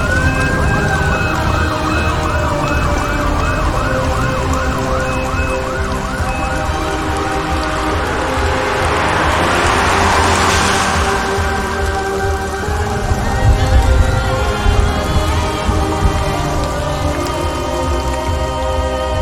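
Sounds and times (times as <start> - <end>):
ambulance siren: 0.0 - 19.2.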